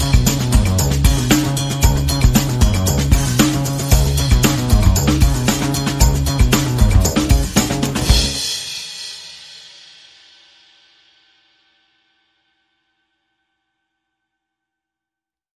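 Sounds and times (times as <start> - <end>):
bass: 0.0 - 8.8
percussion: 0.0 - 12.5.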